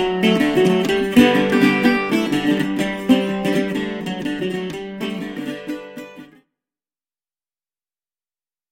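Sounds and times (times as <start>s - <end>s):
octave mandolin: 0.0s - 6.4s.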